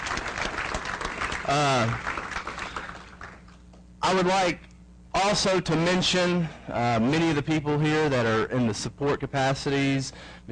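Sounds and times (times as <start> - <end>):
crowd applause: 0.0 - 3.5
speech: 1.5 - 2.1, 4.1 - 4.6, 5.2 - 10.4.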